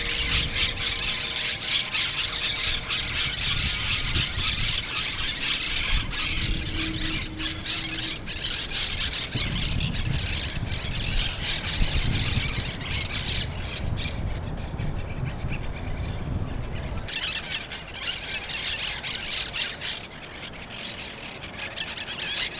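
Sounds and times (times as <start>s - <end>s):
monk parakeet chorus of grating screechy calls: 0.0s - 14.3s, 15.4s - 22.5s.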